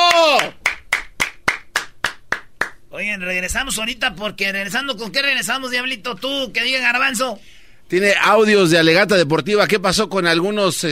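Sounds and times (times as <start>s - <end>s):
person exclaiming: 0.0s - 0.6s
single person clapping hands: 0.0s - 2.8s
speech: 3.1s - 10.9s.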